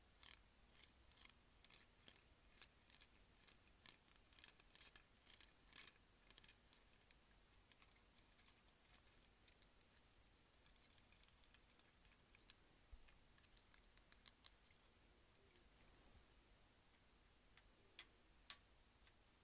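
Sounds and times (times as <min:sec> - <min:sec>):
faint steady low hum: 0:00.0 - 0:19.4
hair clips snapping and clicking: 0:00.2 - 0:12.6.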